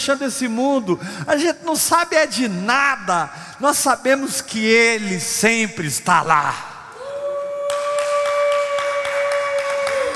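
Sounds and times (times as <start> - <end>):
speech: 0.0 - 6.7
audience applause: 7.6 - 10.1.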